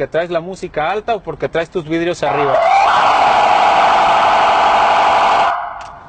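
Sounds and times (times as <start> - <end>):
speech: 0.0 - 3.4
police siren tone used for traffic jams: 2.2 - 6.0.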